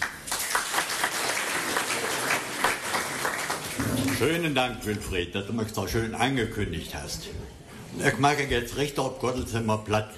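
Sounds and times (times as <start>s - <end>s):
audience applause: 0.0s - 4.5s
speech: 4.2s - 10.1s.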